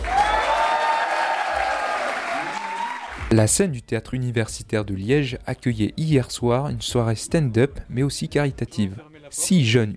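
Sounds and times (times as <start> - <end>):
student audience cheering and clapping at a charity stand-up comedy night in Liège: 0.0 - 3.3
speech: 3.3 - 9.9.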